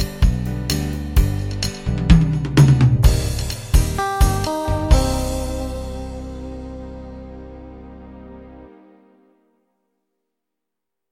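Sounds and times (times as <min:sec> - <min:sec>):
1960s pop guitar rhythms: 0:00.0 - 0:08.0.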